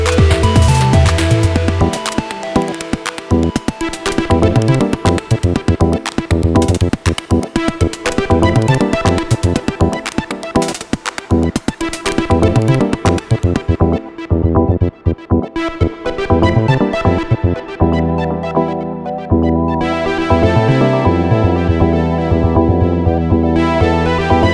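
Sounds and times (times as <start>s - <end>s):
noisy industrial acid-rave music on synthesizers: 0.0s - 24.5s.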